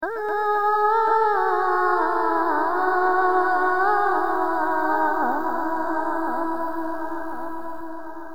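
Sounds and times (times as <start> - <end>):
vocals: 0.0 - 8.3.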